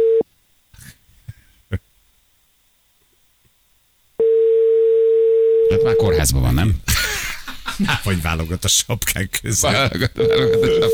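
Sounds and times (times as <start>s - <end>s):
outgoing phone call ringing tone: 4.2s - 5.9s, 10.2s - 10.9s
speech: 6.0s - 6.9s, 7.8s - 10.9s
laughter: 6.8s - 8.8s, 9.5s - 10.9s.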